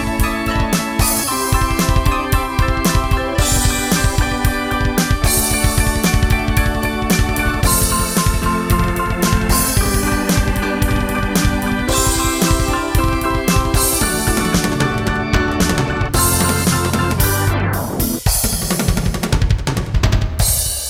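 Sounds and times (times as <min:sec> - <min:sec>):
keyboards: 0:00.0 - 0:20.6.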